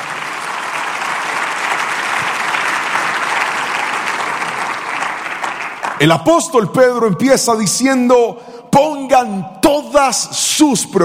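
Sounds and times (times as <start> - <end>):
audience applause: 0.0 - 6.4
speech: 6.0 - 11.0.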